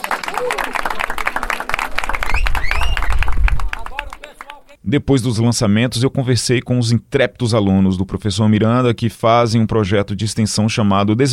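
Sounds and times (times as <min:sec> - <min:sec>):
applause after launch: 0:00.0 - 0:04.8
speech: 0:04.9 - 0:11.3.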